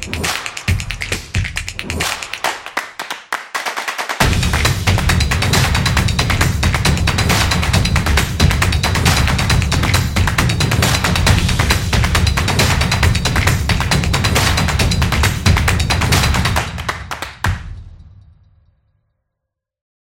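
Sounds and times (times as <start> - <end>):
percussion claps: 0.0 - 17.8.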